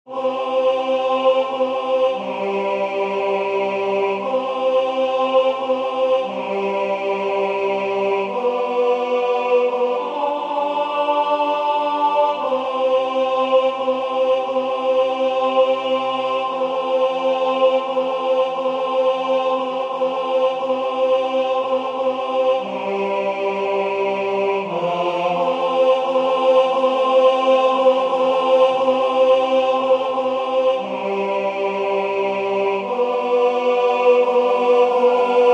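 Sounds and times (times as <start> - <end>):
tenor singing sacred music: 0.1 - 35.5.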